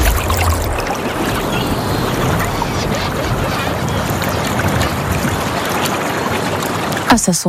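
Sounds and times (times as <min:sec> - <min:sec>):
sea breeze: 0:00.0 - 0:07.4
waves: 0:00.0 - 0:07.4
seagulls: 0:01.0 - 0:06.8.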